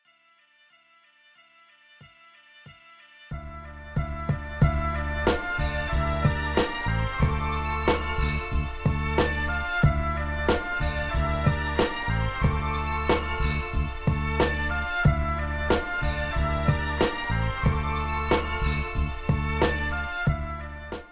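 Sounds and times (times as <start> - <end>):
beats: 2.0 - 21.1.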